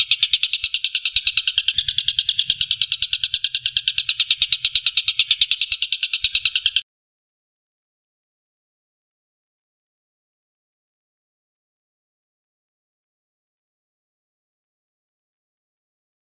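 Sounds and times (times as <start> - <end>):
Stork-billed kingfisher rattling: 0.0 - 6.8.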